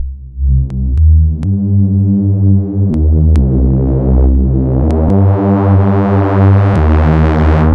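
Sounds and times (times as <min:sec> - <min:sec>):
synth loop: 0:00.0 - 0:07.7.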